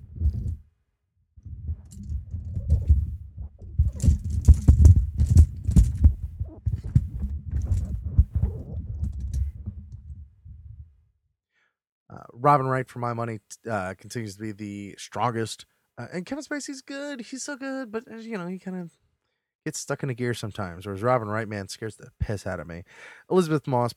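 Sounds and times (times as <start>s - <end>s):
microphone handling noise: 0.0s - 0.6s, 1.4s - 11.0s
speech: 12.4s - 19.0s, 19.6s - 23.9s.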